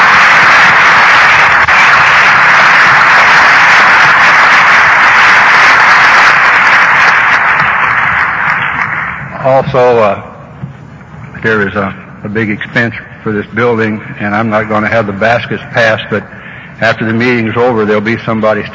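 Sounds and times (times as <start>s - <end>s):
audience applause: 0.0s - 9.6s
speech: 9.4s - 10.3s, 11.4s - 18.7s.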